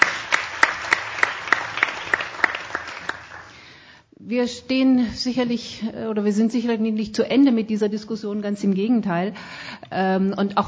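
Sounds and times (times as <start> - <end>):
audience applause: 0.0 - 3.6
speech: 4.3 - 10.6.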